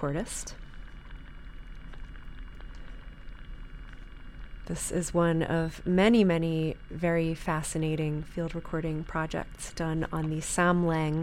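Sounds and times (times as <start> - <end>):
speech: 0.0 - 0.6, 4.7 - 11.2
seaweed and sea urchins in a saltwater bed: 0.6 - 4.6.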